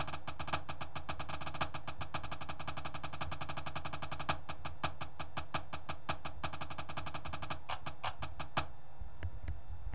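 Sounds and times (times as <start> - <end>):
drumline snare drum: 0.0 - 8.7.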